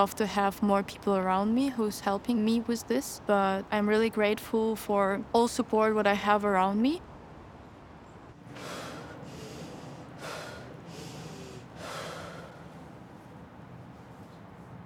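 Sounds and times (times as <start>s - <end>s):
speech: 0.0s - 7.1s
deep inhale and exhale: 8.5s - 13.0s.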